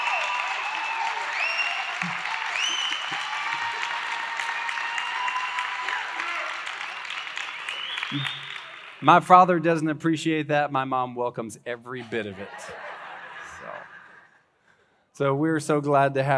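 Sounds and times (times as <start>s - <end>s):
cheers and whoops from a large crowd: 0.0s - 8.8s
large crowd applauding loudly: 0.0s - 9.3s, 12.6s - 14.4s
speech: 8.1s - 8.4s, 9.0s - 12.9s, 15.2s - 16.3s
laughter: 12.0s - 14.4s.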